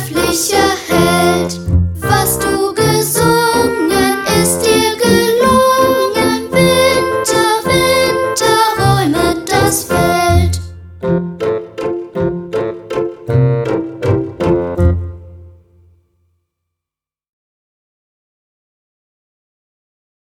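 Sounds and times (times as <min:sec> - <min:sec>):
song: 0:00.0 - 0:15.8.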